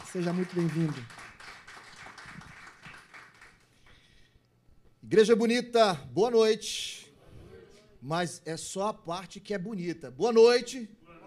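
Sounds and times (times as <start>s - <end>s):
audience clapping: 0.0s - 4.1s
speech: 0.1s - 1.2s, 5.1s - 7.0s, 8.0s - 11.0s.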